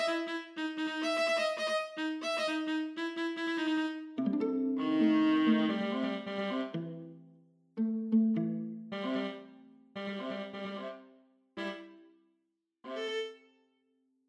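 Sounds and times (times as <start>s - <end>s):
midi music piece: 0.0s - 11.0s.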